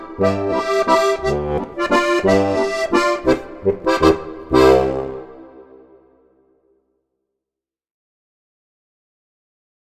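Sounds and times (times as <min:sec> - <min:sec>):
harmonica: 0:00.0 - 0:06.0.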